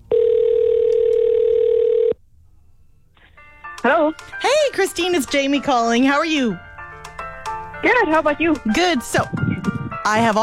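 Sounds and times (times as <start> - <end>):
telephone dial tone as a call is placed: 0.1 - 2.2
speech: 3.8 - 6.7, 7.8 - 9.4, 10.0 - 10.4.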